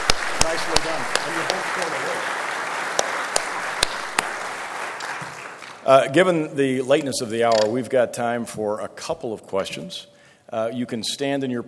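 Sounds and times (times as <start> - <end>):
audience applause: 0.0 - 5.9
speech: 0.4 - 2.4, 5.9 - 11.6.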